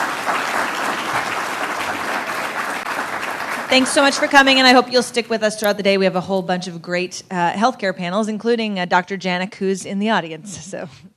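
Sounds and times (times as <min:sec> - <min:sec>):
crowd applause: 0:00.0 - 0:04.4
speech: 0:03.7 - 0:11.1.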